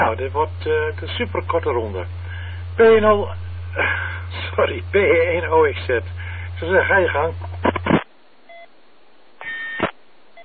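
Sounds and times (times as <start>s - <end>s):
speech: 0.0s - 7.6s
beep: 9.4s - 9.8s.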